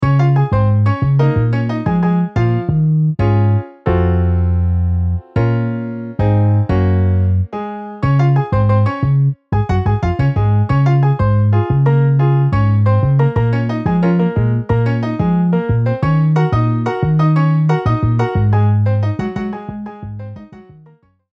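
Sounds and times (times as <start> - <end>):
MIDI piano and bass: 0.0 - 21.3.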